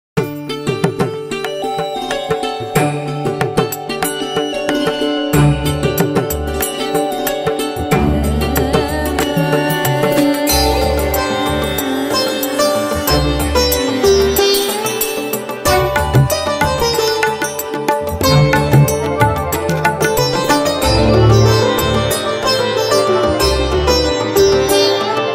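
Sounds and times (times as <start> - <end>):
Indian instrumental music: 0.2 - 25.3.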